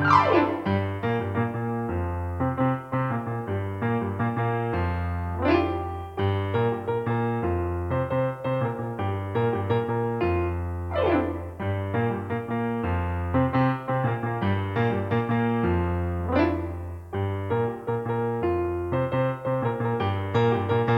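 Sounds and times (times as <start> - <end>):
piano: 0.0 - 20.9.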